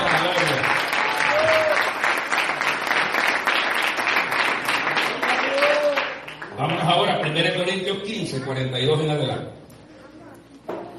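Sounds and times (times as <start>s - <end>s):
audience applause: 0.0s - 7.2s
speech: 8.0s - 9.6s.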